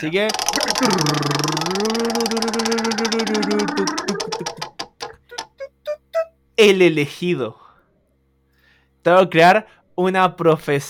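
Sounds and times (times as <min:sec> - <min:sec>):
speech: 0:00.0 - 0:04.1, 0:06.6 - 0:07.6, 0:09.0 - 0:10.8
game wheel spun during a tabletop role-playing session: 0:00.0 - 0:05.5.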